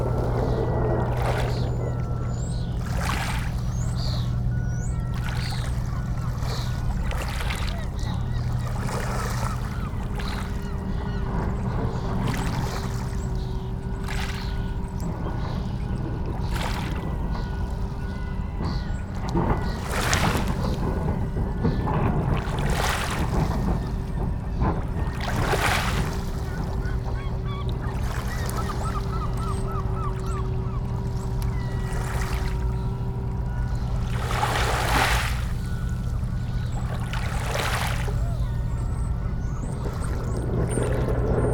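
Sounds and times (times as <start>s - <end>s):
sea: 0.0s - 41.5s
seagulls: 0.0s - 41.5s.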